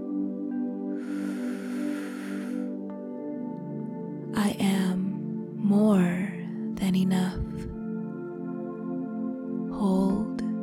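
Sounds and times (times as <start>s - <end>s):
quiet steady musical drone: 0.0s - 10.6s
deep inhale during a guided meditation: 1.0s - 2.8s
speech: 6.9s - 7.7s.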